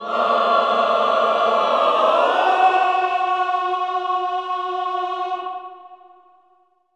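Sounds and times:
choir singing cluster chord: 0.0s - 6.4s.

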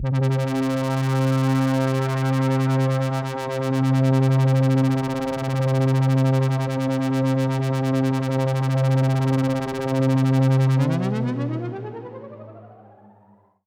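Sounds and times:
synth pad in C from a Prophet One: 0.0s - 13.4s.

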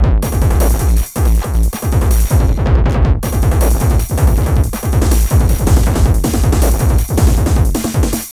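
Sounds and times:
hard loud techno with TR-909 drums: 0.0s - 8.3s.

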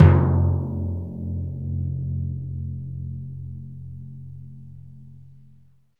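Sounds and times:
dry timpani hit in F: 0.0s - 1.8s.

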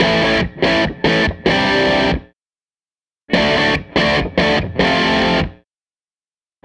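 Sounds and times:
guitar loop: 0.0s - 2.3s, 3.3s - 5.6s.

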